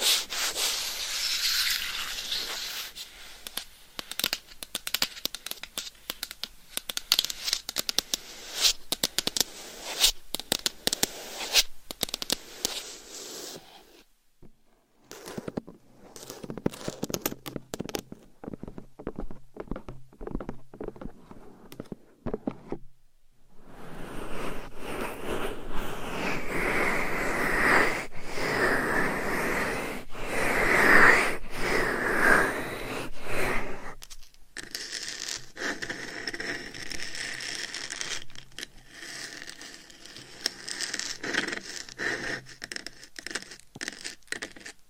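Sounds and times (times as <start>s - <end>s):
claws scratching and tapping a binaural microphone: 0.0s - 3.6s, 7.2s - 14.0s, 15.1s - 22.8s, 23.6s - 44.8s.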